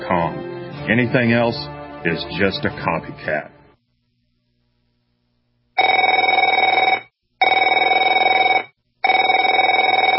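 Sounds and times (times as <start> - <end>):
speech: 0.1 - 3.6
telephone ringing: 5.8 - 10.1.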